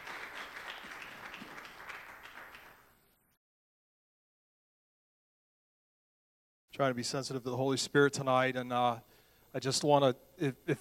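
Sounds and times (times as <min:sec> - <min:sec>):
church congregation applauding to welcome a preacher: 0:00.0 - 0:03.1
speech: 0:06.8 - 0:10.7.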